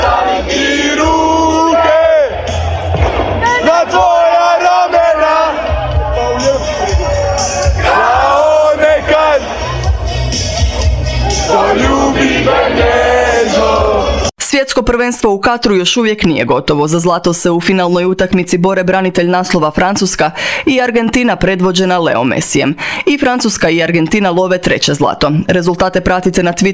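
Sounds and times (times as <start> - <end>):
football fans celebrating and chanting: 0.0 - 14.3
speech: 14.8 - 26.7.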